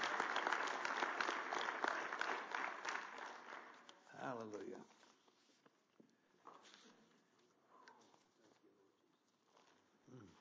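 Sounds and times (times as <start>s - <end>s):
audience clapping hands: 0.0s - 4.5s
speech: 4.3s - 5.0s.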